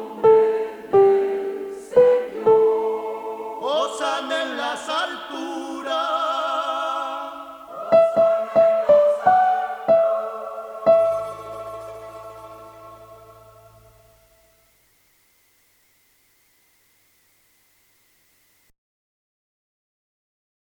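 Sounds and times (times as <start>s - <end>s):
soprano singing a sacred piece: 0.0s - 14.4s.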